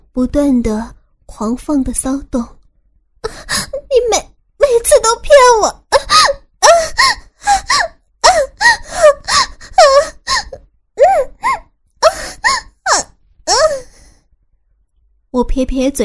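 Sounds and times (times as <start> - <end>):
speech: 0.2 - 2.6, 5.0 - 5.8, 15.6 - 16.0
woman moaning and gasping: 5.9 - 14.2.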